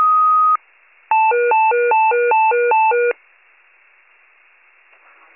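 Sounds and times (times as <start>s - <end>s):
fire pager alert: 0.2s - 3.2s.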